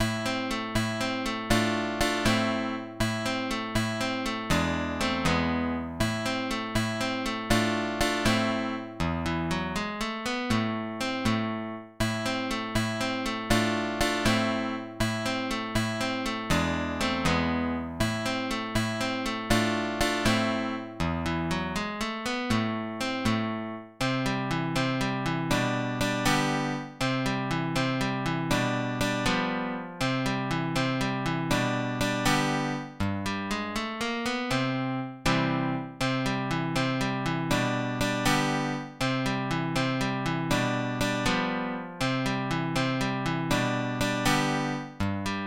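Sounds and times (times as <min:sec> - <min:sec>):
music piece in A minor: 0:00.0 - 0:45.4.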